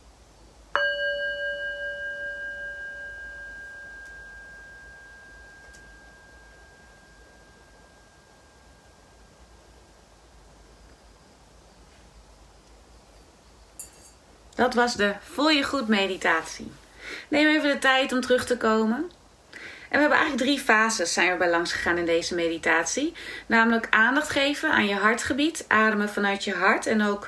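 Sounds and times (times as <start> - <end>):
singing bowl end signal of meditation: 0.7 - 10.6
speech: 14.6 - 19.2, 19.9 - 27.2.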